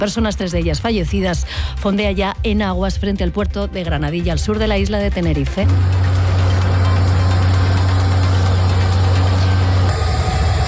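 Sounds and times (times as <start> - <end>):
speech: 0.0 - 6.2
helicopters flying overhead: 5.6 - 10.6.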